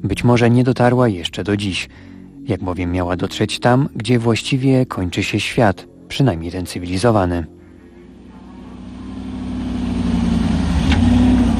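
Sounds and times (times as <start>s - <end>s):
speech: 0.2s - 7.6s
off-road car driving to the village of Al-Hadidiyya: 7.0s - 11.5s.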